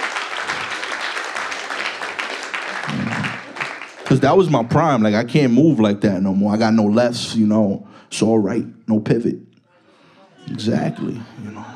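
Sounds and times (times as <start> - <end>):
crowd clapping: 0.0 - 5.3
speech: 4.1 - 9.5, 10.5 - 11.7.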